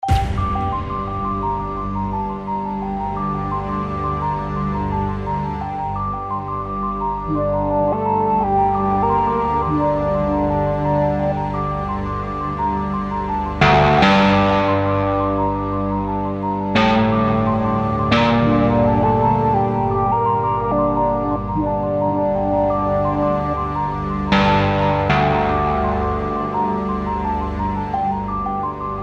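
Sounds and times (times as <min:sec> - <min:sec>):
ambience: 0:00.0 - 0:29.0.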